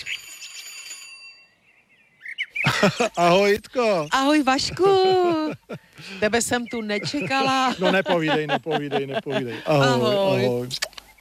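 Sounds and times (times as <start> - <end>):
small hand bell ringing at a gate: 0.0 - 1.6
laughter: 2.6 - 3.5, 4.6 - 10.6
speech: 2.8 - 10.9.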